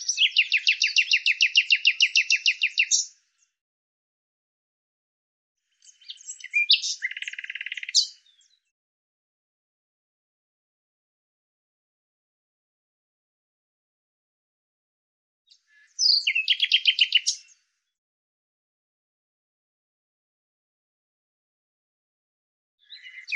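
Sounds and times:
thin high bird chirps: 0:00.0 - 0:03.6, 0:05.8 - 0:08.7, 0:15.5 - 0:17.6, 0:22.8 - 0:23.3.

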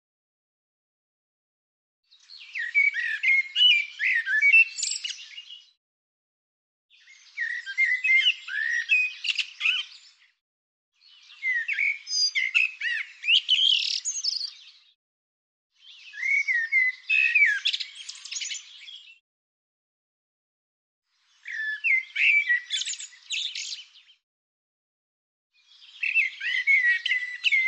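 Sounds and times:
bird song: 0:02.1 - 0:05.8, 0:06.9 - 0:10.4, 0:11.0 - 0:15.0, 0:15.7 - 0:19.2, 0:21.1 - 0:24.2, 0:25.5 - 0:27.6.

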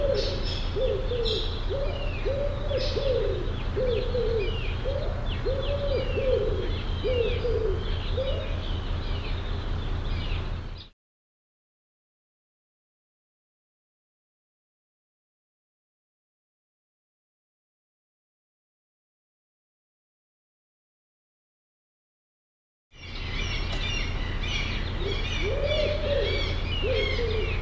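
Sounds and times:
low hooting arched bird calls: 0:00.0 - 0:10.9, 0:23.0 - 0:27.6.

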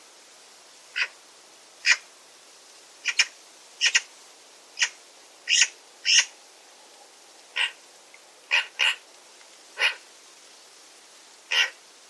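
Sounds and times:
bird calls with brief high sharp notes: 0:03.0 - 0:04.1, 0:04.8 - 0:06.3, 0:08.5 - 0:09.0, 0:11.5 - 0:11.8.

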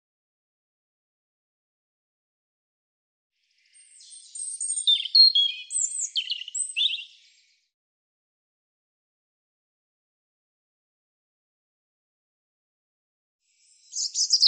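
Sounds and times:
European robin singing high phrases of slurred whistles and trills: 0:03.6 - 0:07.6, 0:13.6 - 0:14.4.

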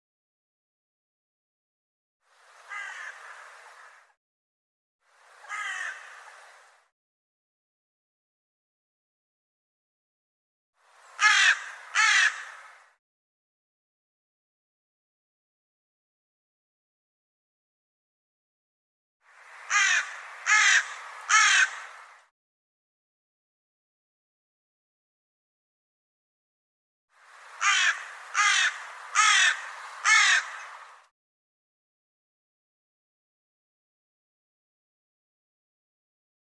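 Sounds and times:
bird cawing: 0:02.6 - 0:04.2, 0:05.4 - 0:06.6, 0:11.1 - 0:13.0, 0:19.6 - 0:22.3, 0:27.6 - 0:31.1.

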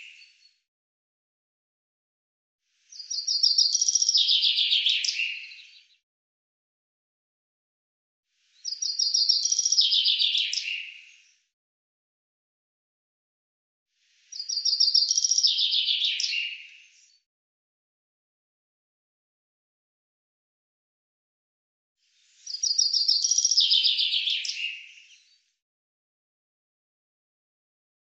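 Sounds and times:
Common chaffinch singing: 0:03.0 - 0:05.8, 0:08.6 - 0:11.2, 0:14.3 - 0:17.2, 0:22.4 - 0:25.2.

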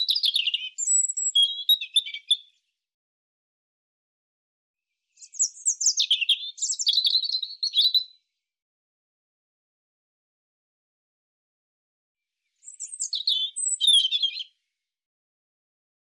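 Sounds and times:
European robin singing: 0:00.0 - 0:02.8, 0:05.1 - 0:08.3, 0:12.4 - 0:14.8.

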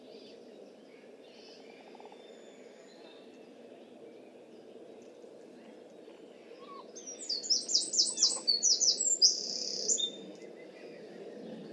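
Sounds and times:
bird song: 0:00.0 - 0:11.7.

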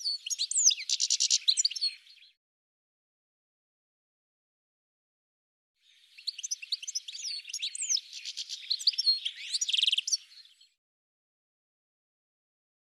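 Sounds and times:
bird singing in high rapid chirps, trills and twittering notes: 0:00.0 - 0:02.4, 0:05.8 - 0:10.8.

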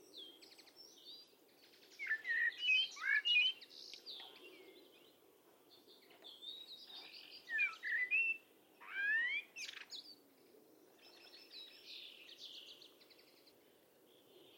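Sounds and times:
bird giving sweet whistled chirps and sharp upslurred notes: 0:02.0 - 0:03.6, 0:07.5 - 0:09.8.

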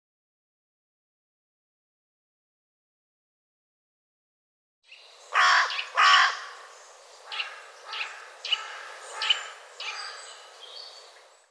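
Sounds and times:
bird giving harsh grating caws: 0:05.3 - 0:10.5.

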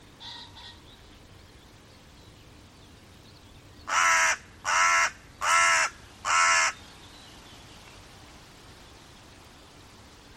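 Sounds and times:
bird giving loud harsh crow-like caws: 0:03.9 - 0:06.8.

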